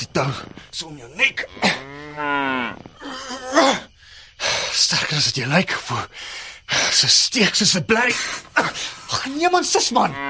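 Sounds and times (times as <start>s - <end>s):
speech: 0.1s - 3.7s, 4.8s - 10.2s
cow mooing: 1.4s - 2.8s.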